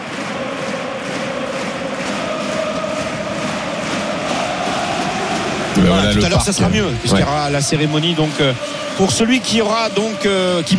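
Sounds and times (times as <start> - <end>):
huge stadium crowd cheering and applauding in a standing ovation: 0.0 - 10.7
speech: 5.8 - 10.7.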